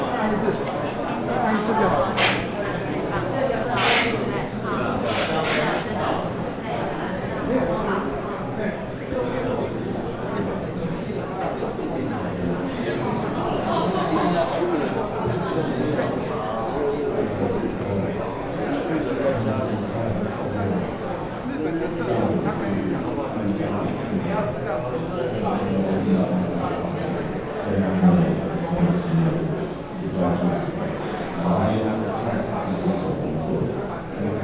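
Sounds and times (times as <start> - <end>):
crowd chatter at a Taipei tea market: 0.0 - 34.4.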